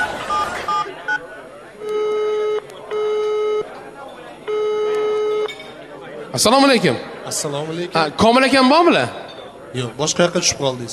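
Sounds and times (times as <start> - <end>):
telephone ringing tones: 1.8 - 3.7, 4.5 - 5.6
speech: 6.3 - 10.9.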